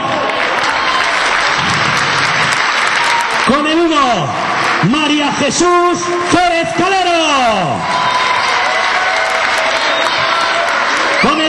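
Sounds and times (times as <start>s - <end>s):
audience applause: 0.0s - 5.4s, 7.8s - 11.4s
speech: 4.1s - 8.2s.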